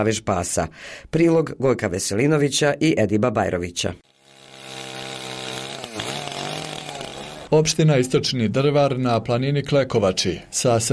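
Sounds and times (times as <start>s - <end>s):
speech: 0.0s - 4.1s, 7.5s - 10.9s
chainsaw engine whining in forest: 4.0s - 7.6s.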